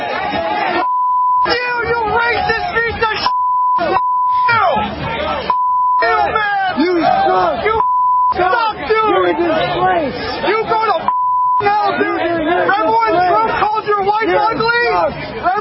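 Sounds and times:
stadium crowd jeering and shouting: 0.0s - 15.5s
high-pitched censor bleep: 0.8s - 1.5s, 3.2s - 4.6s, 5.5s - 6.2s, 7.8s - 8.4s, 11.1s - 11.7s.

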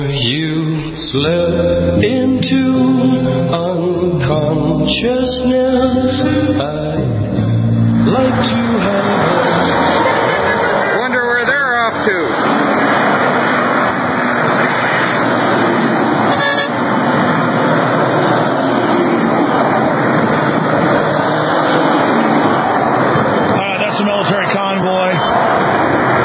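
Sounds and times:
speech: 0.0s - 7.4s, 8.1s - 9.9s
indistinct voices: 0.0s - 26.2s
military vehicles rumbling past: 0.0s - 26.2s
military vehicle horn honking: 8.0s - 11.9s, 16.0s - 17.5s.

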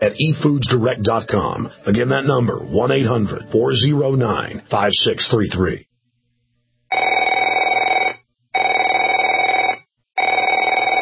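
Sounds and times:
speech: 0.0s - 5.9s
telephone ringing with a buzzing bell tone: 6.9s - 11.0s.

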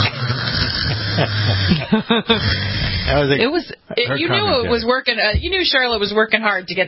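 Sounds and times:
bulldog snoring: 0.0s - 3.4s
laughter: 0.8s - 2.5s, 3.9s - 4.9s
speech: 1.2s - 6.8s.

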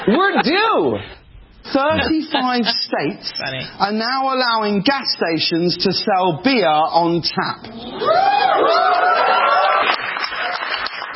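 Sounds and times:
speech: 0.0s - 9.3s
audience applause: 8.4s - 11.1s.

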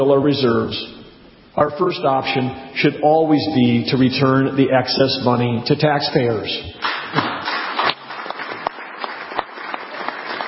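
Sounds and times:
speech: 0.0s - 1.0s, 1.6s - 6.8s
audience applause: 6.8s - 10.4s.

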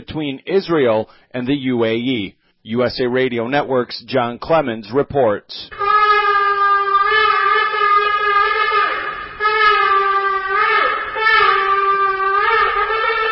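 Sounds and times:
speech: 0.0s - 5.8s
shofar ram's horn being blown at the St. Regis Hotel in Abu Dhabi: 5.7s - 13.3s.

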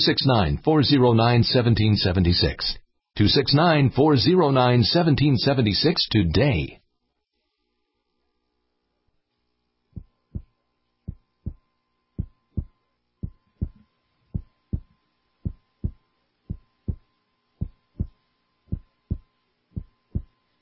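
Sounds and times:
speech: 0.0s - 6.8s
faint hum: 0.0s - 20.6s
heartbeat: 9.9s - 20.5s.

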